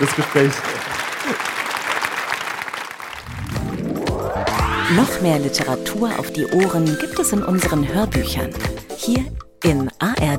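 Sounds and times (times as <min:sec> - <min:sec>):
speech: 0:00.0 - 0:00.8, 0:04.9 - 0:10.3
audience applause: 0:00.0 - 0:03.8
low rising tone: 0:03.2 - 0:05.5.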